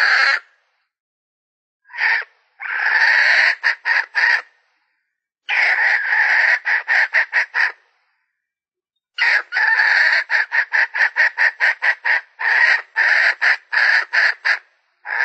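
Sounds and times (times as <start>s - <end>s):
Red junglefowl hen cackling: 0.0s - 0.5s, 1.9s - 4.5s, 5.5s - 7.8s, 9.2s - 15.2s.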